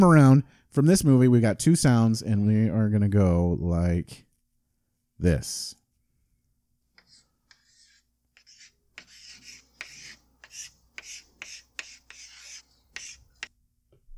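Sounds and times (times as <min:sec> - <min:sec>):
speech: 0:00.0 - 0:04.3, 0:05.2 - 0:05.8
chalk writing a name on a chalkboard: 0:07.0 - 0:13.5.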